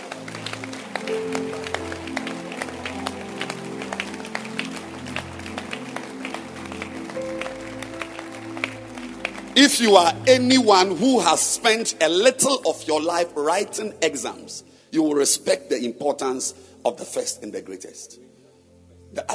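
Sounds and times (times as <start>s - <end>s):
audience clapping hands: 0.0s - 13.6s
speech: 9.6s - 18.4s, 19.1s - 19.3s.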